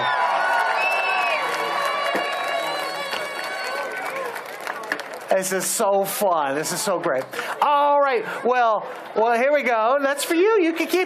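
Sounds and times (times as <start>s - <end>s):
audience applause: 0.0s - 5.7s
speech: 5.3s - 11.0s.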